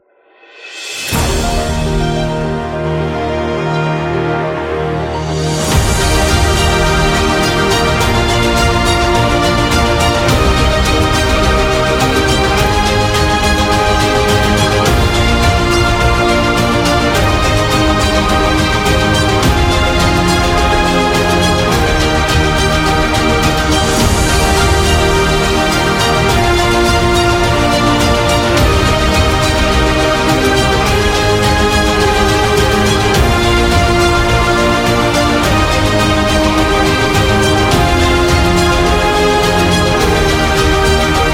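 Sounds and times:
award ceremony opening intro music: 0.4s - 41.3s.

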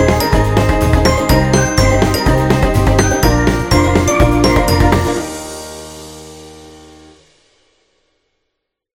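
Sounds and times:
happy birthday kids background music: 0.0s - 7.1s.

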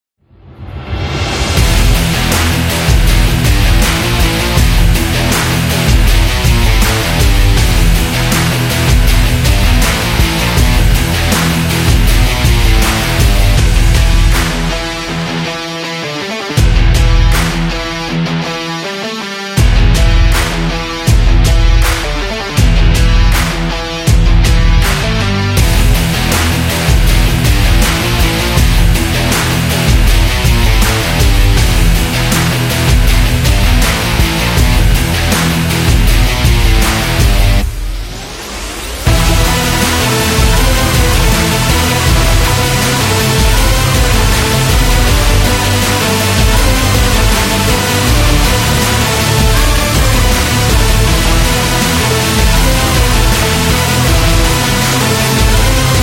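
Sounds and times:
rock music: 0.8s - 56.0s.

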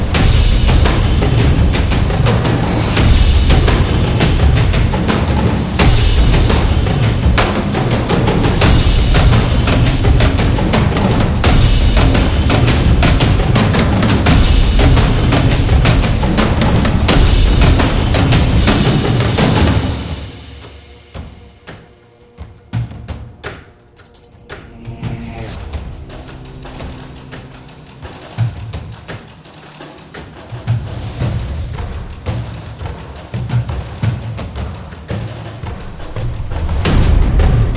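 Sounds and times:
epic cinematic drums: 0.0s - 37.7s.

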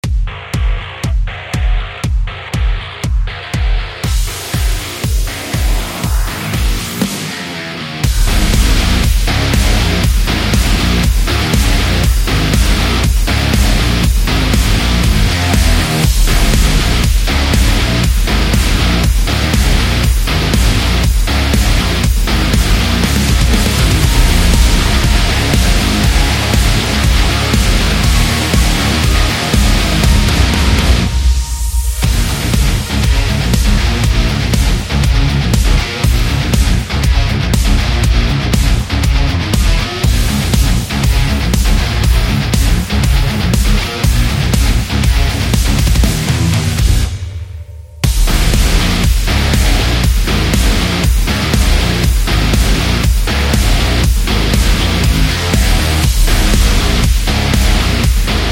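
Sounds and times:
metal music: 0.0s - 58.5s.

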